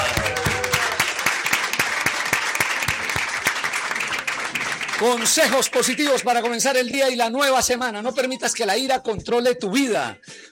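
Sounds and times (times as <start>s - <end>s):
audience applause: 0.0s - 6.6s
speech: 5.0s - 10.4s.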